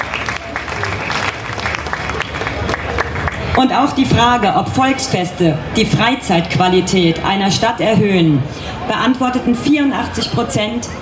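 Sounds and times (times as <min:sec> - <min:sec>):
audience applause: 0:00.0 - 0:03.6
speech: 0:03.6 - 0:11.0.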